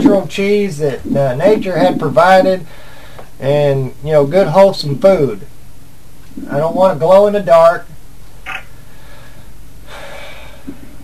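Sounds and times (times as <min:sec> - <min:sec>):
speech: 0:00.1 - 0:05.5, 0:06.4 - 0:07.9
person breathing in deeply: 0:02.6 - 0:03.3, 0:08.8 - 0:10.9.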